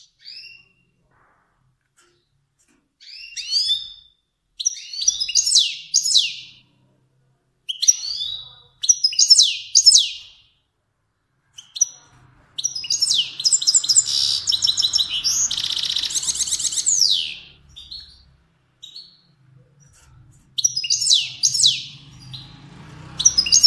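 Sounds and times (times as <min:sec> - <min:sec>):
finch singing: 0:03.0 - 0:06.7, 0:07.7 - 0:10.4, 0:11.6 - 0:23.6.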